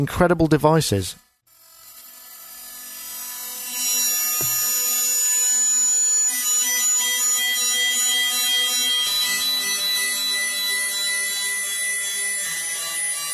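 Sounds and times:
speech: 0.0 - 1.2
experimental feedback-only electronic music drones: 1.2 - 13.3
piercing high feedback whistles: 6.2 - 13.3.

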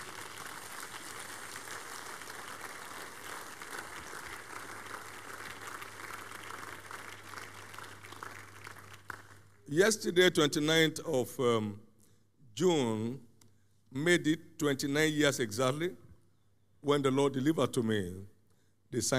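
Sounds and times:
audience clapping hands: 0.0 - 9.7
speech: 9.7 - 11.8, 12.6 - 13.3, 13.9 - 16.0, 16.8 - 18.3, 18.9 - 19.1.

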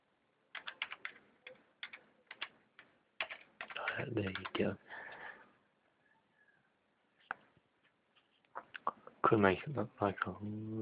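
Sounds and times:
typing on a computer keyboard: 0.5 - 4.6
speech: 4.0 - 5.1, 9.3 - 10.8.

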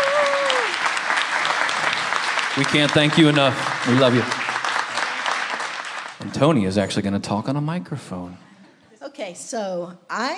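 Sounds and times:
audience applause: 0.0 - 7.4
speech: 2.6 - 4.4, 6.4 - 8.5, 9.2 - 10.3.

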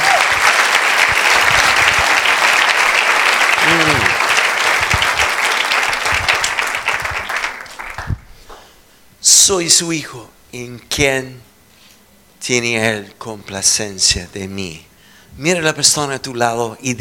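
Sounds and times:
audience applause: 0.0 - 8.2
speech: 9.5 - 11.5, 12.4 - 17.0.

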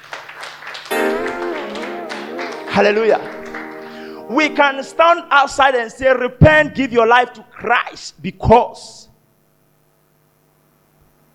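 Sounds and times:
audience clapping: 0.0 - 5.1
speech: 2.8 - 3.4, 4.3 - 9.1.

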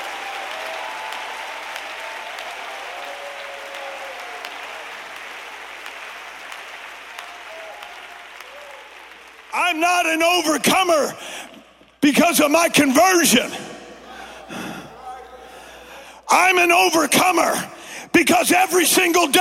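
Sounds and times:
audience clapping hands: 0.0 - 12.0
speech: 9.6 - 11.3, 12.1 - 13.7, 16.4 - 19.4.

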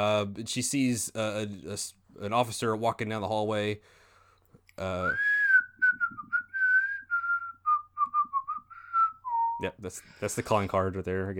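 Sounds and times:
speech: 0.0 - 4.0, 4.8 - 5.3, 9.6 - 11.3
person whistling a tune: 5.0 - 9.7.

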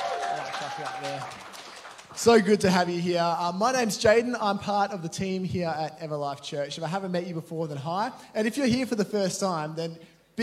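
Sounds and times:
crowd round of applause: 0.0 - 2.6
speech: 0.6 - 1.5, 2.2 - 10.4.

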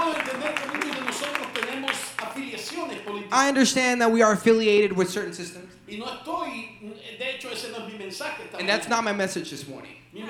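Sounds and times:
audience clapping: 0.0 - 3.2
speech: 3.3 - 10.2.

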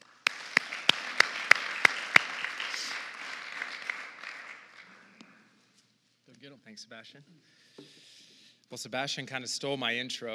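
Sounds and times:
audience applause: 0.0 - 5.4
speech: 6.5 - 10.3.

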